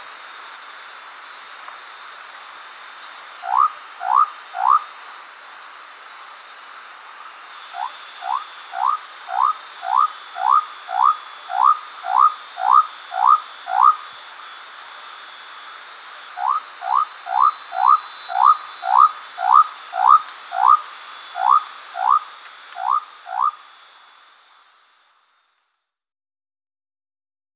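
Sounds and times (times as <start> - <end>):
faint steady hum: 0.0 - 26.0
Leptodactylus mystaceus frog whistled whoops: 3.4 - 4.9, 7.7 - 14.1, 16.4 - 24.6.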